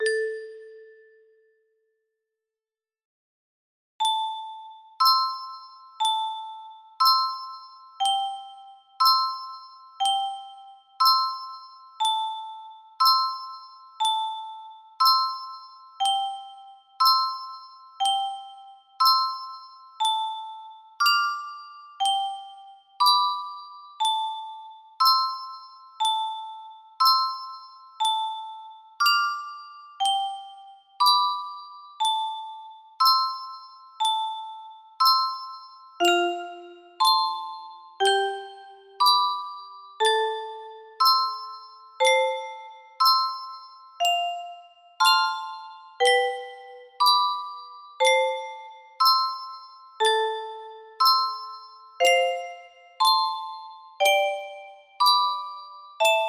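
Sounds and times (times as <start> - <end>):
music box: 0.0 - 1.8, 4.0 - 56.2.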